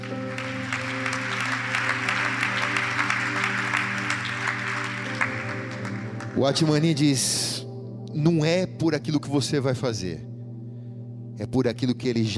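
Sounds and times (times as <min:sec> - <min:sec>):
applause: 0:00.0 - 0:07.0
speech: 0:06.4 - 0:07.6, 0:08.2 - 0:10.3, 0:11.4 - 0:12.3.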